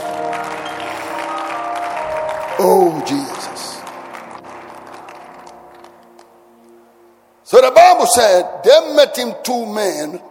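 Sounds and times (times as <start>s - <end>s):
audience clapping hands: 0.0s - 6.3s
speech: 2.6s - 3.7s, 7.6s - 10.2s.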